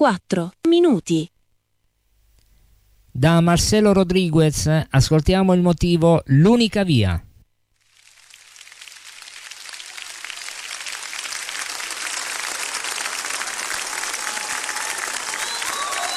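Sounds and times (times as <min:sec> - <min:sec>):
speech: 0:00.0 - 0:01.4, 0:03.2 - 0:07.3
crowd applauding: 0:07.8 - 0:16.1
faint whistles: 0:14.3 - 0:16.1.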